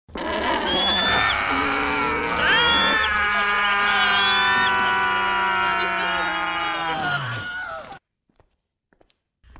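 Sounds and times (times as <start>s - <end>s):
group of people screaming: 0.6s - 8.0s.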